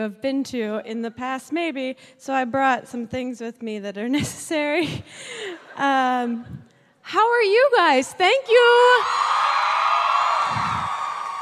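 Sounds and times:
speech: 0:00.0 - 0:09.3
audience screaming and cheering: 0:09.0 - 0:11.4.

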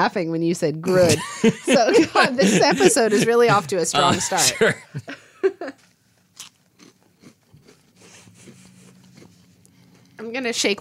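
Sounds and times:
speech: 0:00.0 - 0:05.8, 0:10.2 - 0:10.7
laughter: 0:00.9 - 0:05.8
crunching on a cracker: 0:06.2 - 0:10.2.

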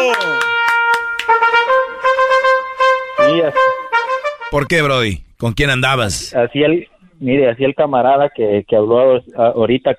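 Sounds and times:
fanfare sound effect played on a call-in radio show: 0:00.1 - 0:04.9
speech: 0:04.5 - 0:09.9.

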